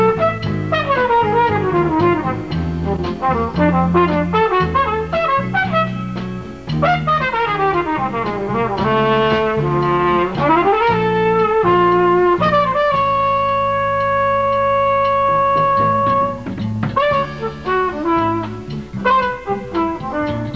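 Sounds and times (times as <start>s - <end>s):
flugelhorn playing jazz fusion in a rehearsal band: 0.0s - 20.5s.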